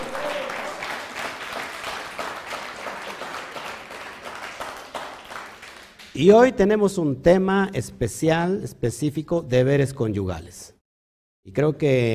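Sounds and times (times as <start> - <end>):
crowd applause and ovation: 0.0 - 6.1
speech: 6.2 - 10.8, 11.4 - 12.1.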